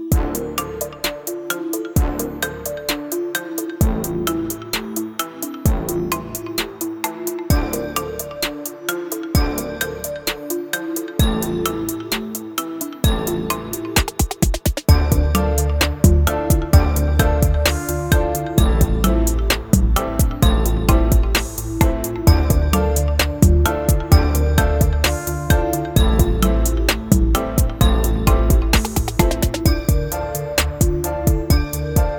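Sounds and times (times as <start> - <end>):
trap beat: 0.1 - 32.1.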